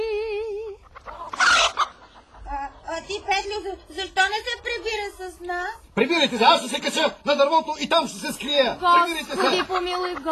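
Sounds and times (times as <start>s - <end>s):
chickens clucking: 0.7s - 3.8s
speech: 3.4s - 10.2s
laughter: 7.8s - 10.2s.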